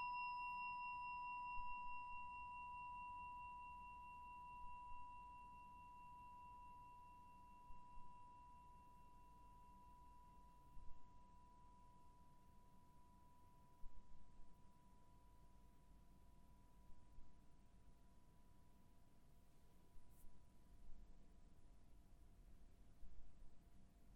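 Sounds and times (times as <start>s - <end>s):
singing bowl long ring: 0.0s - 18.9s.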